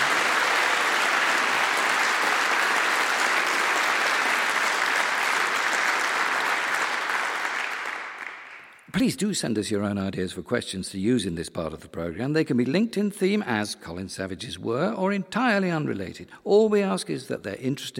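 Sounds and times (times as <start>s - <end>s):
audience applause: 0.0s - 8.8s
speech: 9.0s - 17.9s.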